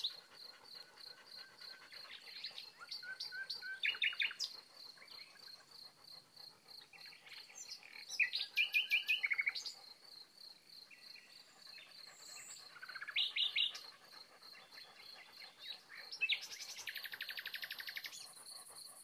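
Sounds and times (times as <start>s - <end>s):
nightingale tweeting to its neighbours: 1.7s - 5.4s, 7.0s - 9.8s, 11.2s - 14.0s, 14.6s - 18.4s.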